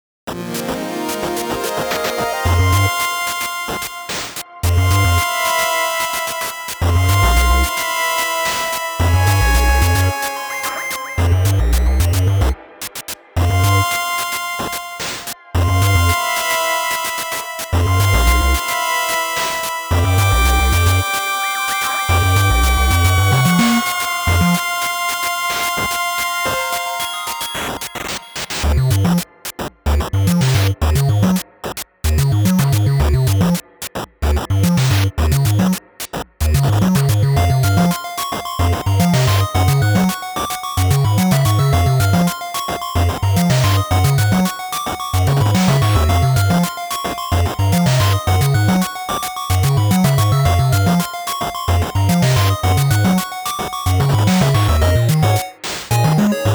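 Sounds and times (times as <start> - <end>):
8-bit version music: 0.3 - 12.6, 13.4 - 29.2, 29.9 - 31.4, 32.0 - 33.6, 34.2 - 35.8, 36.4 - 56.5.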